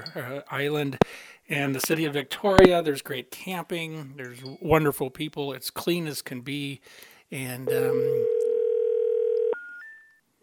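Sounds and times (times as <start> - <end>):
speech: 0.2 - 8.3
telephone dial tone on a busy line after a dropped call: 7.9 - 9.6.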